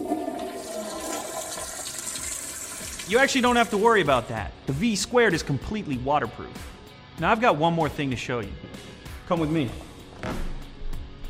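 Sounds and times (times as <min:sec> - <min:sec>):
toilet flushing: 0:00.0 - 0:04.1
speech: 0:03.1 - 0:10.4.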